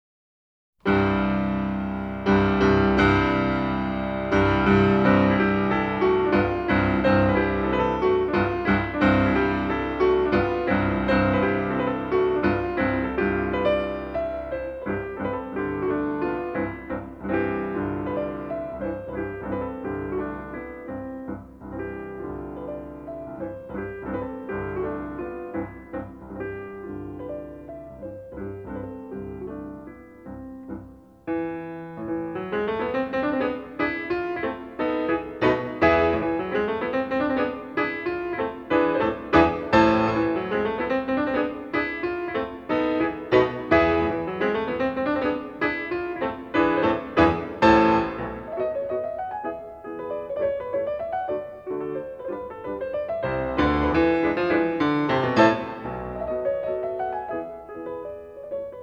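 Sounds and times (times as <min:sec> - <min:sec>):
piano mazurka: 0:00.8 - 0:58.8.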